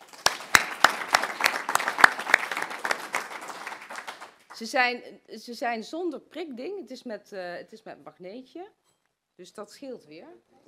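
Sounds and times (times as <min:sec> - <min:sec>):
applause: 0:00.0 - 0:04.7
speech: 0:04.6 - 0:08.8, 0:09.4 - 0:10.6.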